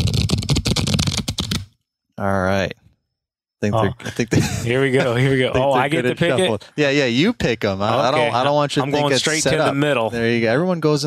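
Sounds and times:
new deck of cards being shuffled: 0:00.0 - 0:01.7
speech: 0:02.2 - 0:02.8, 0:03.6 - 0:11.0
laughter: 0:03.8 - 0:06.8, 0:07.6 - 0:10.2.

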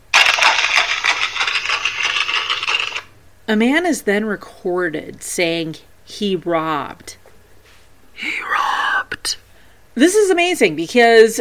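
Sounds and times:
horses' hooves running on the ground: 0:00.2 - 0:03.1
speech: 0:03.5 - 0:07.2, 0:09.2 - 0:09.4, 0:10.0 - 0:11.3.

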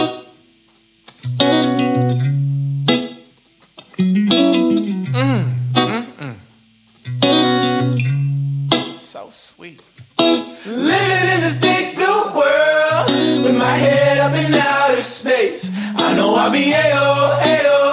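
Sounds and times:
electric guitar played through effects: 0:00.0 - 0:09.1, 0:09.8 - 0:17.9
speech: 0:09.3 - 0:10.0, 0:10.6 - 0:10.9, 0:15.1 - 0:17.7.

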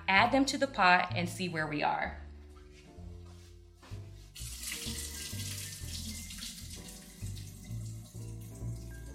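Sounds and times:
speech: 0:00.1 - 0:02.2
water pouring into a sink as potatoes are strained through a colander: 0:04.4 - 0:09.1.

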